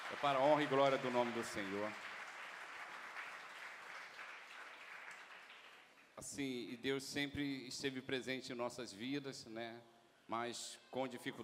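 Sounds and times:
audience applauding: 0.0 - 6.1
speech: 0.1 - 2.1, 6.2 - 11.4.

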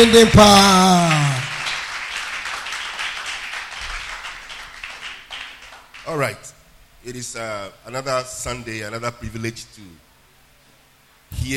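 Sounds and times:
speech: 0.0 - 1.2, 6.1 - 10.0, 11.3 - 11.5
audience clapping hands: 0.0 - 6.3.

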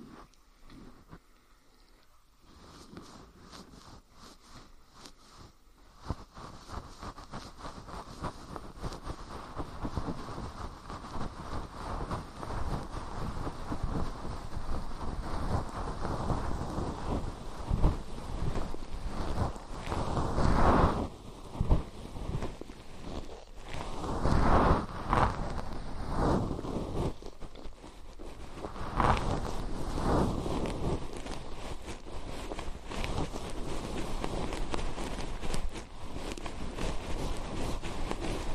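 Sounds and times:
fluffy ear cleaning brushing and rustling: 0.0 - 38.5.

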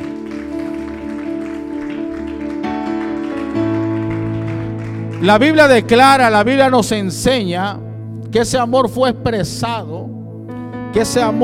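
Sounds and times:
audience applause: 0.0 - 5.9
speech: 5.2 - 10.2, 10.9 - 11.4.

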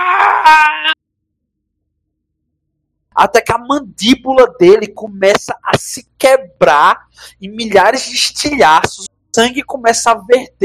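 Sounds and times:
man screaming: 0.0 - 1.0
speech: 0.4 - 1.0, 3.2 - 10.6.

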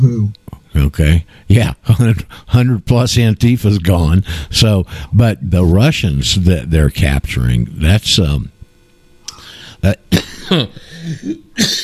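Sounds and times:
quiet hiss: 0.0 - 11.8
speech: 0.3 - 8.5, 9.8 - 11.8
person coughing after something went down the wrong pipe: 10.1 - 11.8
rough throat-clearing: 10.1 - 11.8.

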